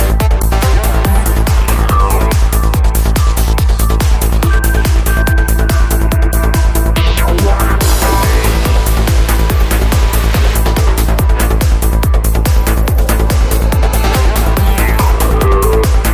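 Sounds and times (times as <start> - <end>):
drums: 0.0 - 16.1
psychedelic progressive trance music with drums: 0.0 - 16.1.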